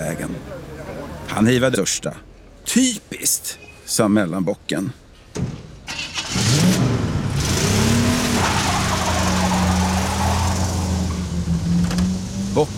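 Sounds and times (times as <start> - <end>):
speech: 0.2 - 0.7, 1.3 - 5.5, 12.6 - 12.7
car driving at full speed: 6.2 - 12.7.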